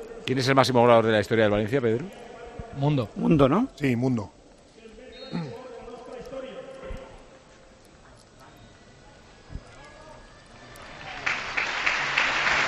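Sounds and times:
speech: 0:00.3 - 0:04.4, 0:05.3 - 0:05.6
stadium crowd applause breaking minute of silence: 0:10.8 - 0:12.6.

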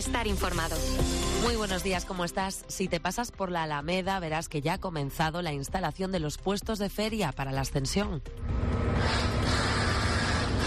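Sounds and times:
speech: 0:00.0 - 0:08.6
large crane assembling a Ferris wheel: 0:08.4 - 0:10.6.

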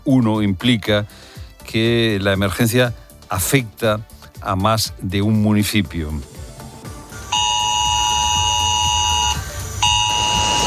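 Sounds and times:
speech: 0:00.0 - 0:06.3
mobile phone emergency alert tone: 0:07.3 - 0:10.6.

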